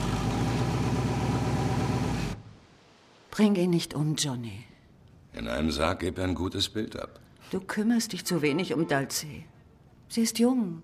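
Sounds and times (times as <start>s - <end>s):
car engine idling: 0.0s - 2.4s
speech: 3.4s - 4.7s, 5.4s - 9.5s, 10.1s - 10.8s.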